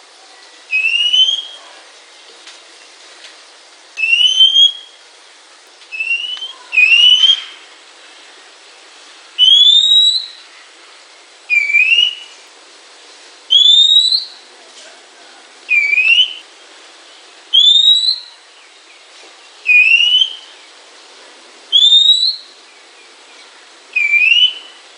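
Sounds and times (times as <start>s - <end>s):
Oriental magpie-robin singing clear slightly rising whistles: 0.7s - 1.6s, 4.0s - 5.0s, 5.9s - 7.6s, 9.4s - 10.4s, 11.5s - 12.4s, 13.5s - 14.4s, 15.7s - 16.4s, 17.5s - 18.4s, 19.7s - 20.5s, 21.7s - 22.5s, 24.0s - 24.8s.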